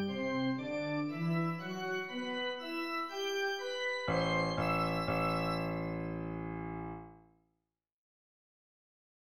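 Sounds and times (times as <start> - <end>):
suspenseful church organ: 0.0 - 7.2.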